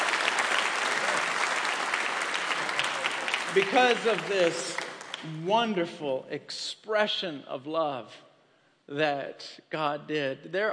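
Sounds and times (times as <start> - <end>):
applause: 0.0 - 5.5
speech: 3.6 - 8.3, 8.9 - 10.7.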